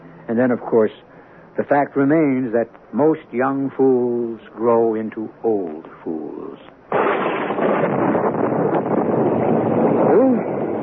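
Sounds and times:
speech: 0.3 - 7.0, 10.1 - 10.5
storm wind roaring: 6.9 - 10.8.

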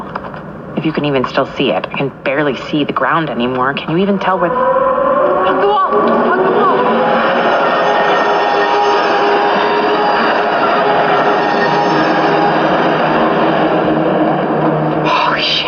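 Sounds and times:
speech: 0.8 - 7.3
subway train roaring past very close: 4.1 - 15.6.

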